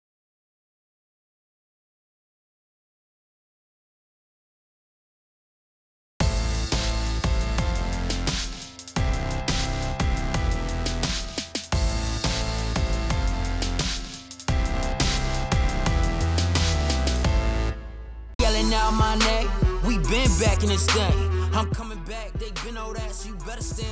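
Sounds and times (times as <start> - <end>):
music: 6.2 - 23.9.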